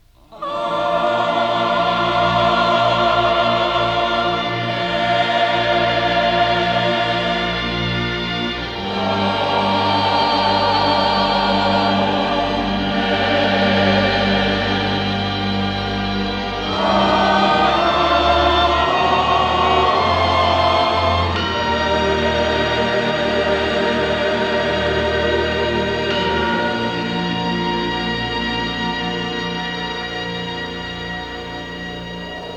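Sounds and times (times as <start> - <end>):
choir singing amen: 0.3 - 32.5.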